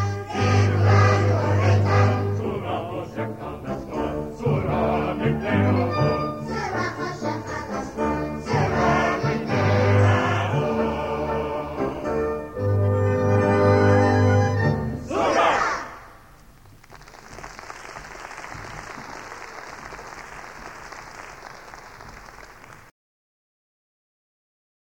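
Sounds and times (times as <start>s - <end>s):
choir singing for Hanukkah: 0.0s - 16.1s.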